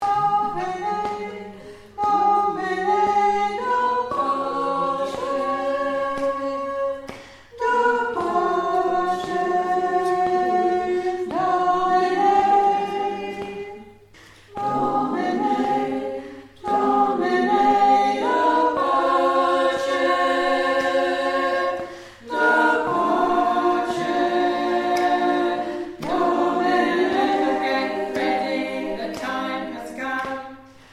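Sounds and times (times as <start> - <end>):
tenor singing: 0.0 - 30.7.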